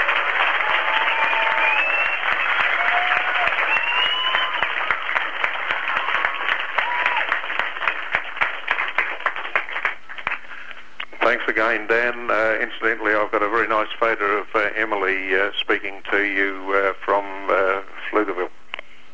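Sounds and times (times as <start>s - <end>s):
audience applause: 0.0s - 10.6s
speech: 11.6s - 18.5s.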